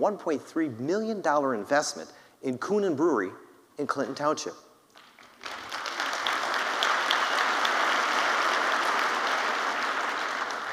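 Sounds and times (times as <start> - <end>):
speech: 0.0 - 4.6
audience applause: 5.0 - 10.7.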